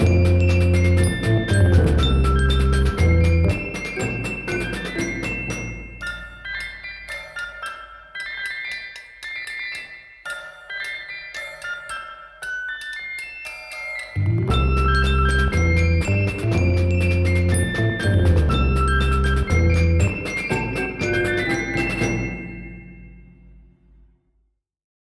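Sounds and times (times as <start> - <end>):
children's band playing: 0.0 - 7.6, 14.2 - 22.8.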